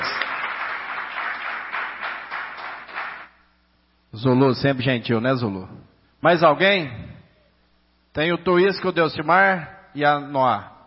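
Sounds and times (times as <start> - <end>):
audience applause: 0.0 - 3.3
speech: 4.2 - 7.0, 8.2 - 10.8.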